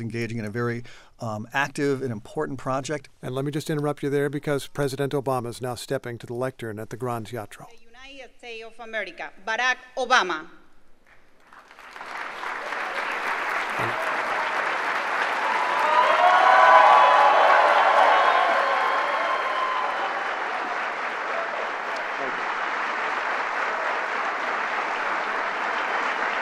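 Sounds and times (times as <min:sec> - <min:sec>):
speech: 0:00.0 - 0:10.6
large indoor audience applause in theater: 0:11.4 - 0:26.3
cheers and whoops: 0:12.6 - 0:22.0.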